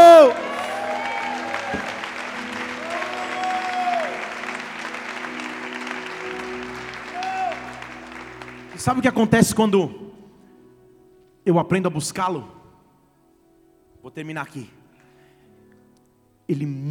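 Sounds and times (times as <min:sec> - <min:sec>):
voices cheering and shouting: 0:00.0 - 0:04.5, 0:07.1 - 0:07.8
audience applause: 0:00.0 - 0:09.3
speech: 0:08.8 - 0:10.0, 0:11.4 - 0:12.6, 0:14.0 - 0:14.8, 0:16.5 - 0:16.9.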